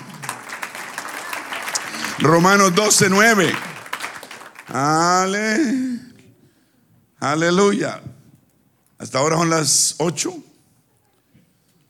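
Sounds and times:
audience applause: 0:00.0 - 0:05.4
speech: 0:02.2 - 0:03.7, 0:04.7 - 0:06.1, 0:07.2 - 0:08.1, 0:09.0 - 0:10.5.

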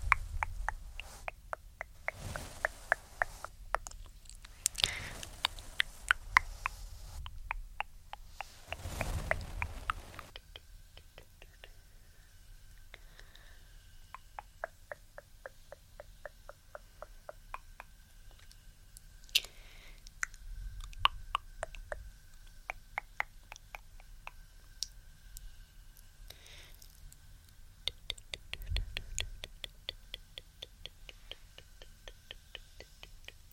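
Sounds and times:
brush strokes: 0:00.0 - 0:07.5, 0:08.1 - 0:10.4
tongue clicking: 0:00.0 - 0:08.8, 0:14.1 - 0:18.6, 0:20.1 - 0:24.9, 0:27.8 - 0:33.5.

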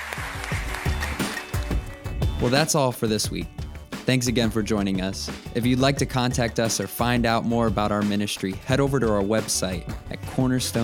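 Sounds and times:
audience clapping: 0:00.0 - 0:02.4
speech: 0:02.4 - 0:10.8.

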